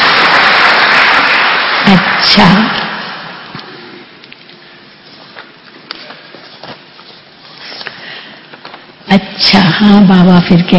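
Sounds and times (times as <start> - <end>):
audience applause: 0.0 - 3.9
speech: 1.9 - 2.8, 9.1 - 10.7.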